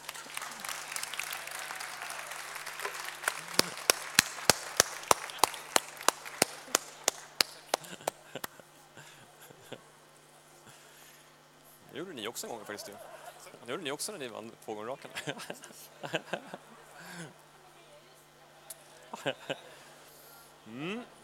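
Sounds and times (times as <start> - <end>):
audience applause: 0.0 - 8.2
laughter: 7.7 - 9.8, 12.6 - 13.6, 15.1 - 17.3, 19.1 - 19.8
speech: 12.0 - 17.4, 19.2 - 19.6, 20.7 - 21.2.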